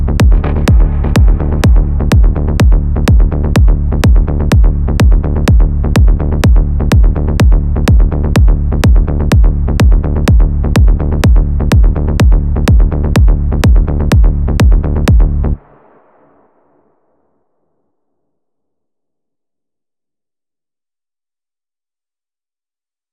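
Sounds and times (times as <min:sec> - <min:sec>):
melodic techno music: 0:00.0 - 0:15.6.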